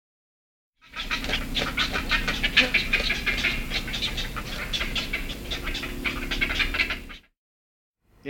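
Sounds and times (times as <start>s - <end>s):
black-headed heron harsh nasal calls: 0.8s - 7.3s.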